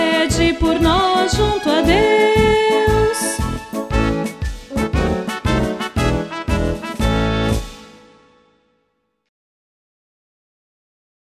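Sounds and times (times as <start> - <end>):
hymn melody: 0.9 - 8.4.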